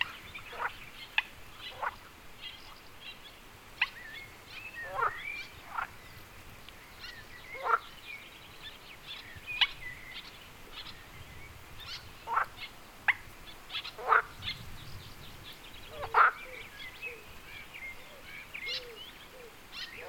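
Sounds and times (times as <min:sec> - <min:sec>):
frog calls at Wyspa Sobieszewska in Gdańsk, Poland: 0:00.0 - 0:02.3, 0:04.8 - 0:06.1, 0:07.0 - 0:08.0, 0:11.8 - 0:14.5, 0:15.9 - 0:20.0.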